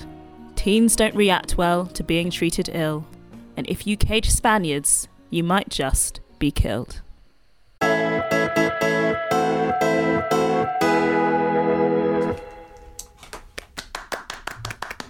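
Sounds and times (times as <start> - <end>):
speech: 0.6 - 7.0
bright musical backing: 7.8 - 13.1
theatre audience clapping in unison: 13.0 - 15.0.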